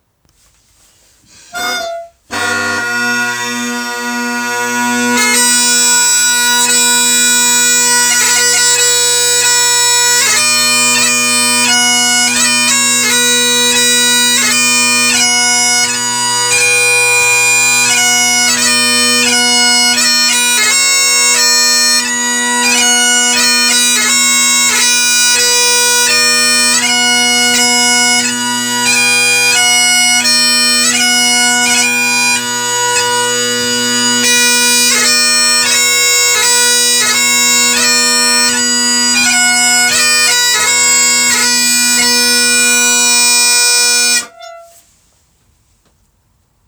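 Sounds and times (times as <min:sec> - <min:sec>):
bagpipes: 0:01.3 - 0:44.8.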